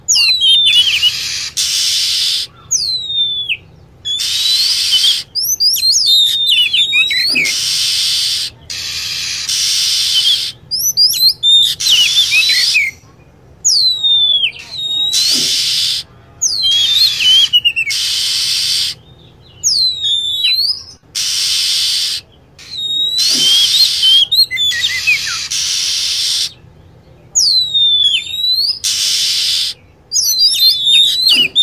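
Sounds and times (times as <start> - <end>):
lovebird calls: 0.0 - 31.6
hissing bursts: 1.0 - 2.5, 7.2 - 10.7, 14.7 - 16.1, 17.9 - 19.0, 21.1 - 24.3, 24.9 - 26.6, 28.8 - 29.8.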